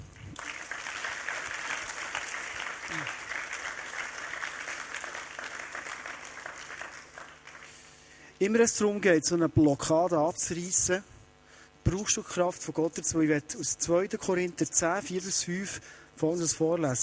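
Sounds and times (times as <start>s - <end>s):
audience applause: 0.1s - 8.1s
speech: 8.4s - 11.1s, 11.9s - 17.0s.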